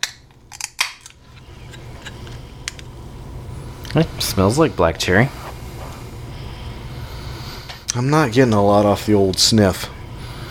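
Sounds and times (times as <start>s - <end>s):
drink can popping open: 0.0s - 1.2s
speech: 3.9s - 5.4s, 8.0s - 10.0s.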